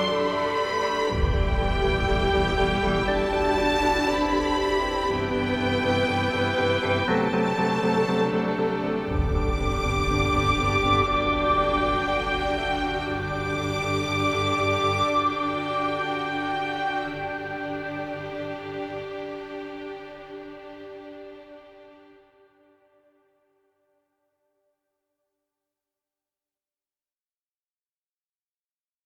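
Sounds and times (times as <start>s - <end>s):
ambient music: 0.0s - 23.1s.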